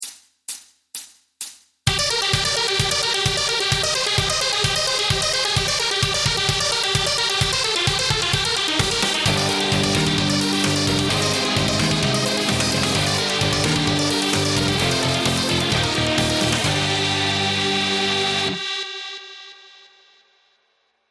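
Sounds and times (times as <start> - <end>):
shred guitar exercise backing track: 1.9 - 18.6.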